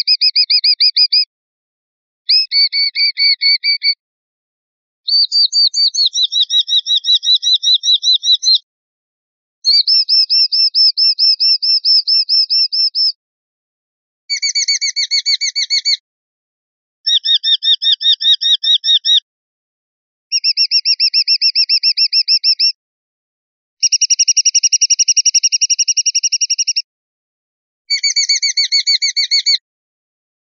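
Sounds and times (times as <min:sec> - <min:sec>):
sparrowhawk calls: 0:00.0 - 0:01.3, 0:02.3 - 0:04.0, 0:05.1 - 0:08.6, 0:09.7 - 0:13.2, 0:14.3 - 0:16.0, 0:17.1 - 0:19.2, 0:20.3 - 0:22.8, 0:23.8 - 0:26.8, 0:27.9 - 0:29.6.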